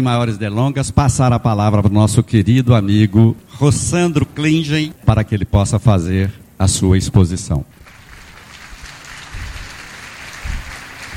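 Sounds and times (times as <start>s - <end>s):
speech: 0.0s - 7.8s
audience applause: 7.8s - 11.1s.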